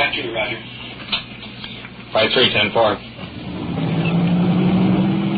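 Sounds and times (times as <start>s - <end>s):
speech: 0.1s - 0.7s, 2.1s - 3.1s
police car engine revving as it accelerates: 3.2s - 5.3s.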